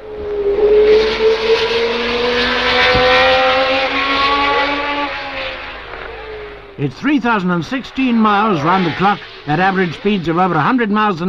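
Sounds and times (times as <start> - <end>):
racing car engines roaring: 0.0 - 11.2
speech: 6.8 - 11.2.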